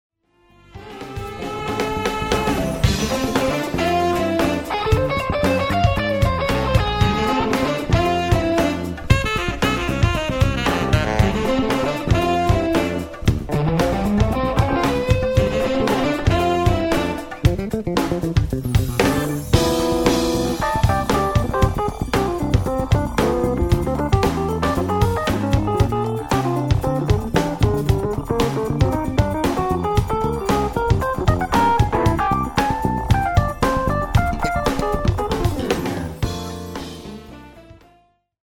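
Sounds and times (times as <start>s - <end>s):
night funk music: 0.7s - 38.0s.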